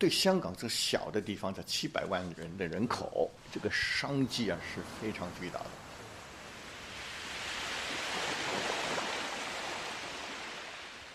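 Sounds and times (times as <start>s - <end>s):
speech: 0.0s - 5.8s
Victoria Harbour sea waves lapping the beach: 3.0s - 11.1s.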